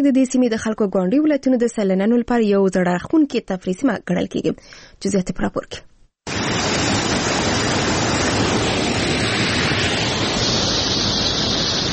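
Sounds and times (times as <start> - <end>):
speech: 0.0 - 5.9
water of the Mazar Baba spring rushing in Uruzgan: 6.3 - 11.9.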